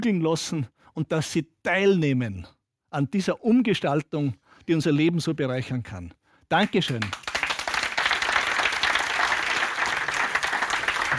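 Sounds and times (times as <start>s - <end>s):
speech: 0.0s - 7.3s
audience applause: 6.9s - 11.1s.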